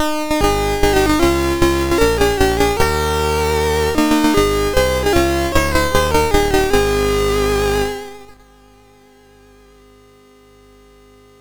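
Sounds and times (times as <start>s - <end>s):
MOS 6581R2 SID chip music: 0.4s - 8.3s.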